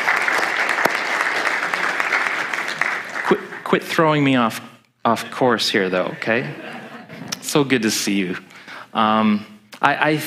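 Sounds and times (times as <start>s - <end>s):
crowd applause: 0.0s - 4.0s
speech: 3.3s - 6.8s, 7.4s - 10.2s
laughter: 5.9s - 7.5s.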